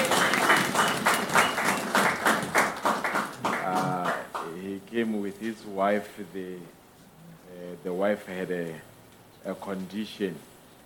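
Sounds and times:
audience applause: 0:00.0 - 0:04.5
speech: 0:05.3 - 0:06.8, 0:07.5 - 0:10.5.

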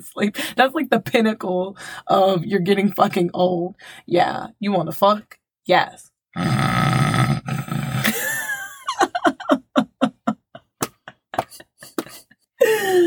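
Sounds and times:
speech: 0:00.0 - 0:07.0
person imitating snoring: 0:06.4 - 0:08.2
laughter: 0:08.0 - 0:12.4.

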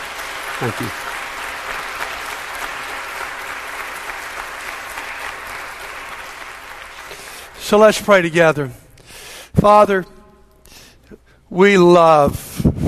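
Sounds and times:
audience applause: 0:00.0 - 0:08.3
speech: 0:00.6 - 0:01.2, 0:07.7 - 0:08.8, 0:09.6 - 0:10.1, 0:11.5 - 0:12.5.

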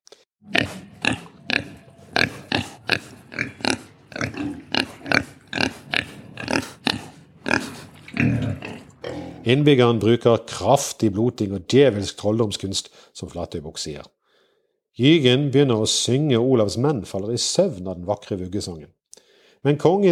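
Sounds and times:
large wild boar grunting: 0:00.4 - 0:09.6
speech: 0:02.9 - 0:03.2, 0:09.5 - 0:14.2, 0:15.0 - 0:19.0, 0:19.6 - 0:20.1.

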